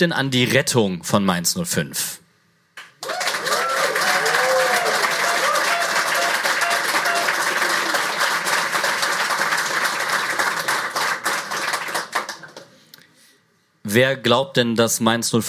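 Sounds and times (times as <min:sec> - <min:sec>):
speech: 0:00.0 - 0:02.2, 0:14.0 - 0:15.4
crowd applause and cheering: 0:02.9 - 0:12.8.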